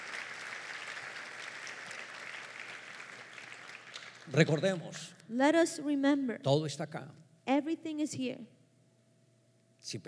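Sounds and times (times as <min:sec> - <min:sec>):
audience applauding: 0:00.0 - 0:05.2
speech: 0:04.3 - 0:08.6, 0:09.8 - 0:10.0.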